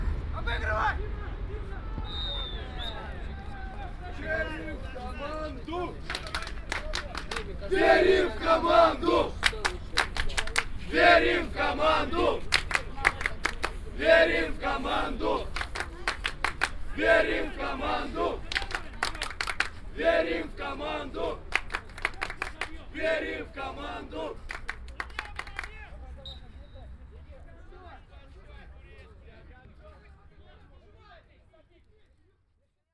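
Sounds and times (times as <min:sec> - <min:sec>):
football fans in Sergiyev Posad: 0:00.0 - 0:32.2.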